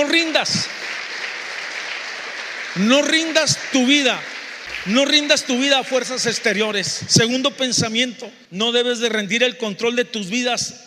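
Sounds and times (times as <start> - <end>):
audience applause: 0.0 - 6.7
speech: 0.1 - 0.9, 2.8 - 10.8.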